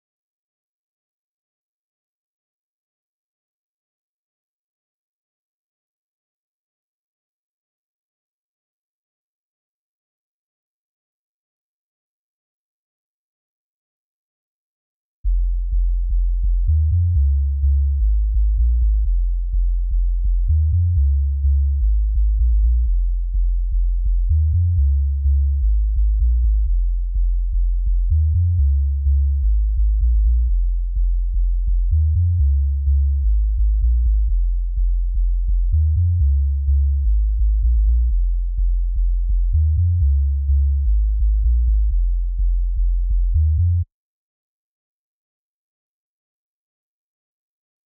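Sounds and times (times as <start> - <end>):
sub bass in G: 15.2 - 43.9.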